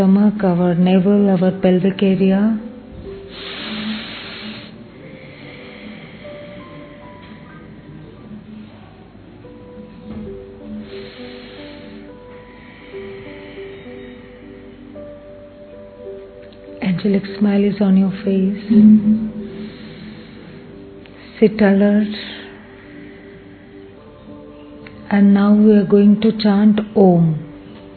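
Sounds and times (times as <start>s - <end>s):
speech: 0.0s - 2.6s, 17.0s - 19.4s, 21.4s - 22.4s, 25.1s - 27.4s
deep breathing: 3.0s - 8.9s, 10.6s - 15.4s, 18.8s - 21.4s, 22.2s - 24.4s.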